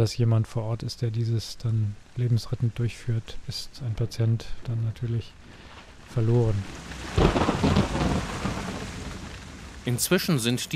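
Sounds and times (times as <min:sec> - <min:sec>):
speech: 0:00.0 - 0:08.4, 0:09.8 - 0:10.7
rain falling: 0:00.0 - 0:10.7
thunder rumbling: 0:06.2 - 0:10.7.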